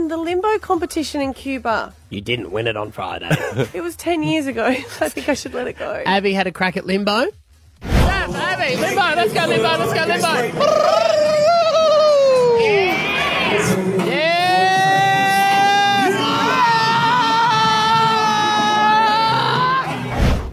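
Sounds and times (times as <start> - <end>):
speech: 0.0 - 11.3
group of people screaming in alarm: 10.6 - 20.1.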